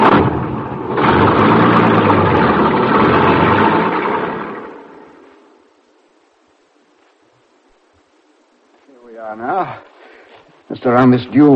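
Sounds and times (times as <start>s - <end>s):
truck engine rumbling: 0.0s - 6.0s
speech: 10.8s - 11.5s.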